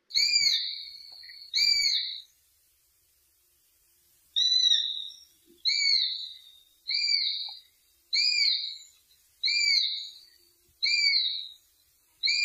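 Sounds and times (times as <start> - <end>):
hawk screams and wavering whistles: 0.1 - 2.2, 4.4 - 10.2, 10.8 - 11.5, 12.2 - 12.4.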